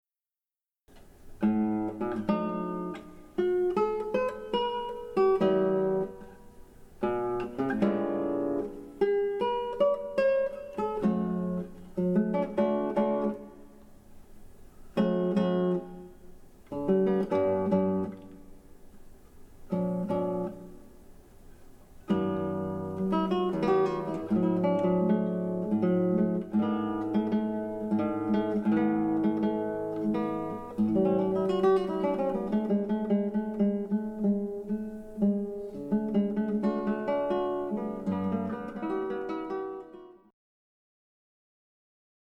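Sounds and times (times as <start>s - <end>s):
guitar piece: 0.9s - 40.3s.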